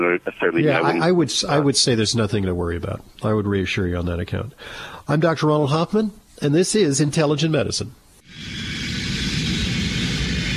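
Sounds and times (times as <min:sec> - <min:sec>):
speech: 0:00.0 - 0:08.6
airplane engine roar inside the cabin: 0:08.3 - 0:10.5.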